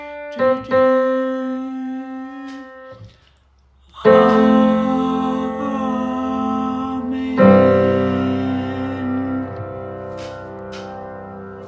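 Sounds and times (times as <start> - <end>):
soprano singing: 0.4 - 3.0, 3.9 - 11.6
SATB four-part choir singing: 4.0 - 10.9.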